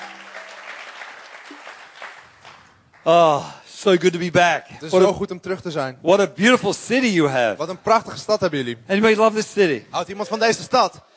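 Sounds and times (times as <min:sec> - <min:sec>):
audience applause: 0:00.0 - 0:03.2
speech: 0:03.0 - 0:11.1.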